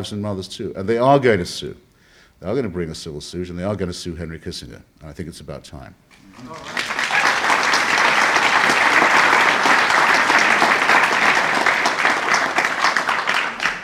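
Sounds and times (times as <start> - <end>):
speech: 0.0 - 6.9
crowd applause: 6.2 - 13.8.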